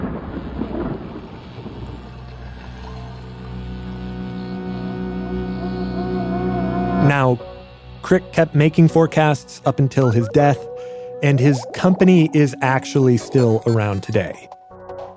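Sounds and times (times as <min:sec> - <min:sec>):
thunder clap: 0:00.0 - 0:02.0
sustained droning tone: 0:01.2 - 0:13.9
speech: 0:08.1 - 0:14.5.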